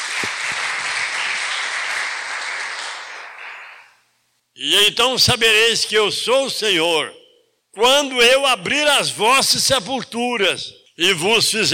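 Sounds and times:
audience applause: 0.0 - 3.9
speech: 4.6 - 7.2, 7.8 - 11.7.

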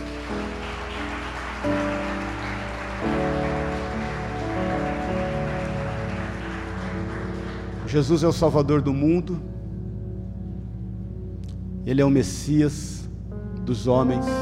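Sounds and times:
audience applause: 0.0 - 8.4
speech: 7.9 - 9.5, 11.9 - 13.0, 13.6 - 14.3.

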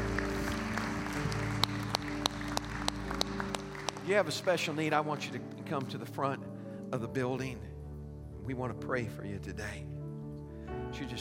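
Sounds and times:
audience applause: 0.0 - 5.3
speech: 4.1 - 7.7, 8.5 - 9.9, 10.9 - 11.1.

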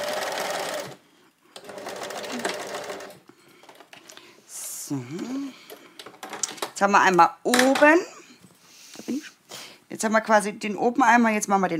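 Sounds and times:
sewing machine stitching during a live sew-along: 0.0 - 1.0, 1.6 - 3.2
speech: 4.9 - 5.6, 6.8 - 8.1, 10.0 - 11.7.

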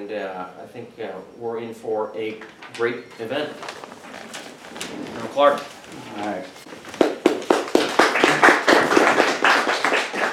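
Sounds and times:
speech: 0.1 - 3.8, 5.0 - 6.6
audience applause: 7.0 - 10.3.

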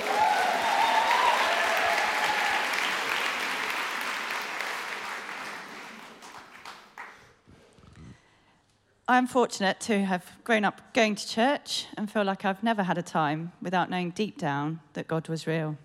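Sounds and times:
audience applause: 0.0 - 7.4
speech: 9.1 - 15.8.

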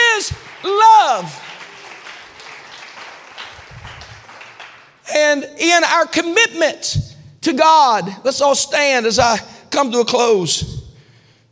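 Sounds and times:
audience clapping: 0.0 - 5.1
speech: 5.4 - 10.8.

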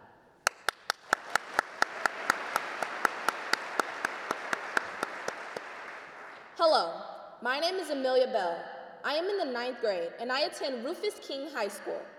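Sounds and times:
one person clapping hands: 0.4 - 6.5
speech: 6.6 - 12.1.

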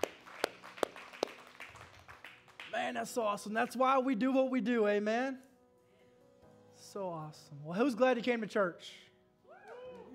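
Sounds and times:
audience hand clapping: 0.0 - 3.1
speech: 2.8 - 5.5, 6.9 - 9.1.

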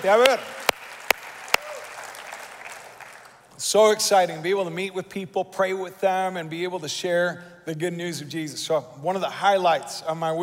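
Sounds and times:
speech: 0.0 - 0.6, 3.6 - 10.4
audience claps: 0.0 - 3.4.

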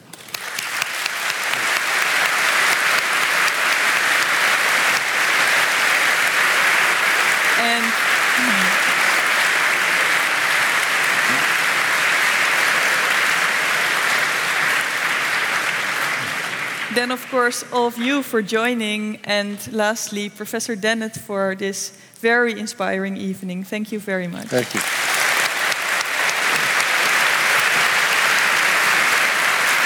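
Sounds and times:
audience applause: 0.0 - 17.0, 24.5 - 29.8
speech: 17.0 - 25.0.

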